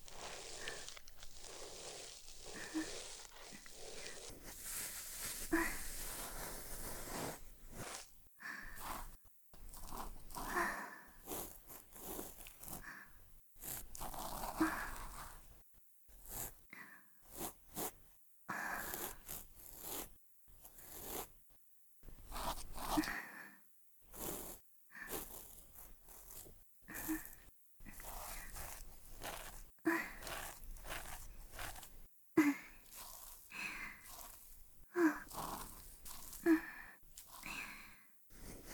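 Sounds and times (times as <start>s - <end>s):
binaural ear cleaning: 0.0s - 13.0s, 13.6s - 15.5s, 18.6s - 21.4s, 22.1s - 23.2s, 24.1s - 38.7s
binaural breathing during ear cleaning: 0.1s - 9.2s, 9.8s - 11.6s, 12.2s - 13.2s, 14.4s - 15.4s, 16.7s - 17.2s, 18.5s - 19.3s, 22.3s - 25.6s, 26.4s - 38.7s.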